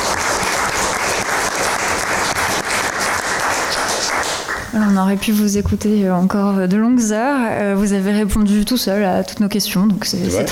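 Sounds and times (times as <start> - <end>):
audience applause: 0.0 - 4.8
speech: 4.7 - 10.4.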